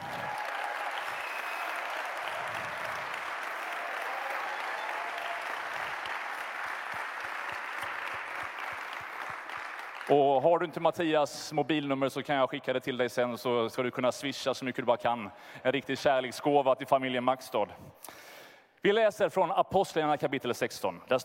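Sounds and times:
audience applause in a large room: 0:00.0 - 0:10.3
speech: 0:10.1 - 0:21.2.

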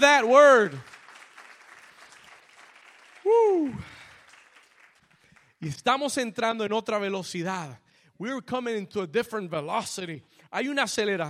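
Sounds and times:
speech: 0:00.0 - 0:01.0, 0:03.2 - 0:04.0, 0:05.6 - 0:11.2
audience applause: 0:00.0 - 0:05.4.

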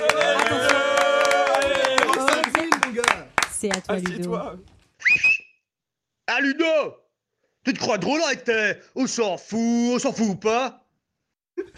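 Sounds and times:
audience applause: 0:00.0 - 0:04.5
speech: 0:03.6 - 0:05.3, 0:06.4 - 0:07.0, 0:07.6 - 0:10.8.

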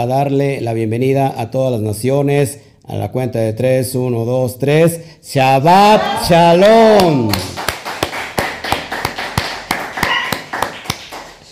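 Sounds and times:
speech: 0:00.0 - 0:07.6
group clapping in welcome: 0:05.9 - 0:11.5.

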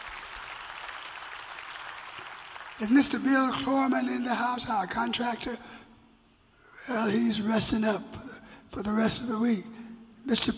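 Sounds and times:
audience applause: 0:00.0 - 0:03.3
speech: 0:02.8 - 0:05.8, 0:06.9 - 0:10.5.

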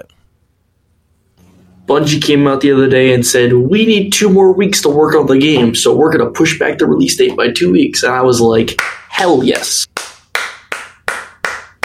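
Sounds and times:
speech: 0:01.9 - 0:09.9
hand clapping: 0:08.7 - 0:11.8.

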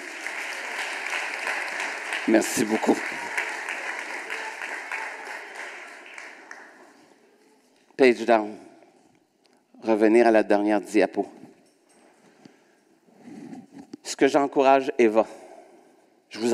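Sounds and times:
audience applause: 0:00.0 - 0:07.1
speech: 0:02.3 - 0:03.2, 0:08.0 - 0:08.7, 0:09.8 - 0:11.4, 0:14.2 - 0:15.4, 0:16.4 - 0:16.5.

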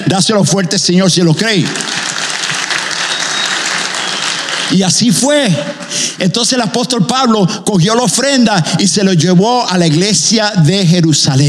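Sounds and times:
speech: 0:00.1 - 0:02.1, 0:04.7 - 0:11.4
audience applauding: 0:01.4 - 0:06.0, 0:09.7 - 0:10.3.

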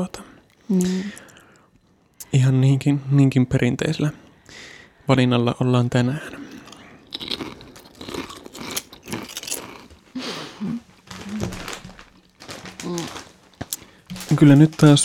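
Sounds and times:
speech: 0:00.0 - 0:01.3, 0:02.3 - 0:06.5, 0:14.4 - 0:15.0
vinegar potato chips crunching: 0:06.5 - 0:15.0.

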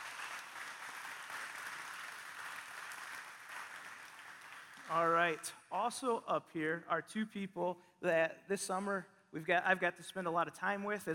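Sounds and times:
audience applauding: 0:00.0 - 0:05.4
speech: 0:04.9 - 0:11.1.

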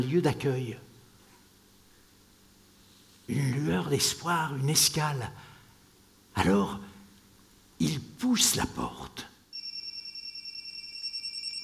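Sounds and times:
speech: 0:00.0 - 0:00.9, 0:03.3 - 0:05.5, 0:06.4 - 0:06.9, 0:07.8 - 0:09.3
telephone ringing with a shrill electronic tone: 0:09.6 - 0:11.6.

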